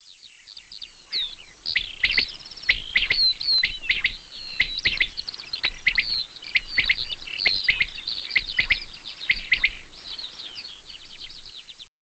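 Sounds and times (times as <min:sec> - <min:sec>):
birds: 0:00.0 - 0:11.9.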